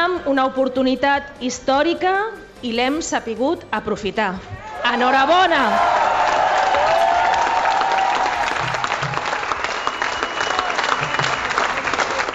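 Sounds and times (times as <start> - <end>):
speech: 0.1 - 6.3
crowd cheering and chanting in unison: 4.5 - 12.3
steady loud applause and clapping: 5.2 - 12.3
whistle: 8.4 - 12.2.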